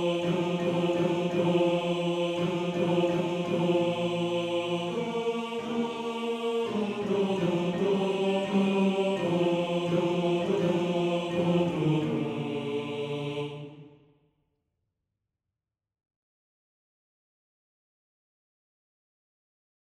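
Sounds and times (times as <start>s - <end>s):
male choir bass voice singing a C: 0.0s - 14.0s.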